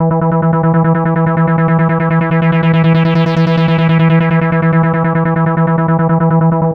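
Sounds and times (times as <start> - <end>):
drum and bass synth: 0.0 - 6.7.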